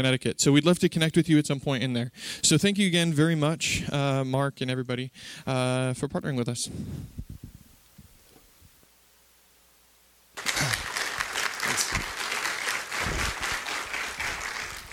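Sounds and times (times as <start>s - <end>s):
speech: 0.0s - 7.3s
audience clapping: 10.4s - 14.9s.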